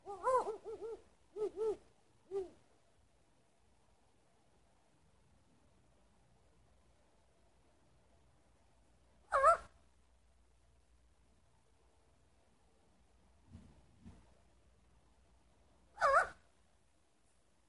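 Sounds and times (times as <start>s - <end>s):
owl hooting: 0.0s - 2.6s, 9.3s - 9.8s, 15.9s - 16.4s.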